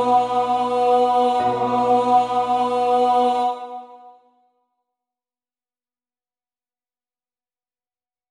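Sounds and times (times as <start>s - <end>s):
bass: 0.0s - 3.1s.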